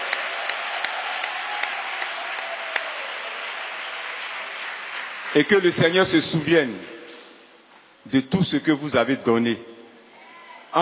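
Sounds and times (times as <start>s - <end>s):
congregation applauding during a church service: 0.0s - 7.6s
speech: 5.3s - 7.0s, 8.1s - 9.7s.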